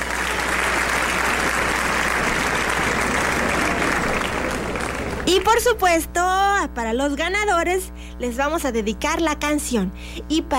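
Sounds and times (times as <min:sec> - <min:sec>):
loud applause: 0:00.0 - 0:05.5
speech: 0:05.4 - 0:10.5.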